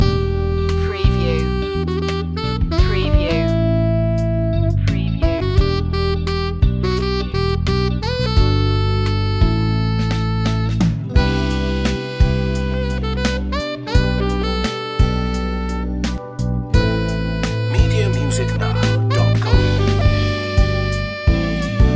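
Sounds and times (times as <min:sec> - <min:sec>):
waking up flower music loop: 0:00.0 - 0:04.2, 0:04.8 - 0:21.9.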